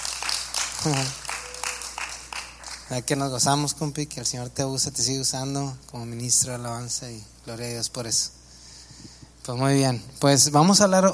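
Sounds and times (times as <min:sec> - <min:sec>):
audience applause at a church gathering: 0:00.0 - 0:03.0
speech: 0:00.8 - 0:01.2, 0:02.9 - 0:08.4, 0:09.5 - 0:11.1.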